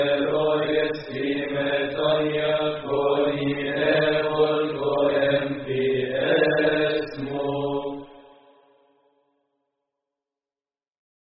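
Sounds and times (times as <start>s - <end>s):
liturgical hymn singing: 0.0s - 8.6s.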